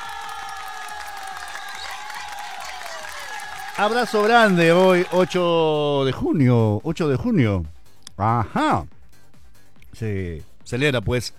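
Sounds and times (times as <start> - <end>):
applause: 0.0 - 5.5
speech: 3.8 - 9.0, 10.0 - 11.3.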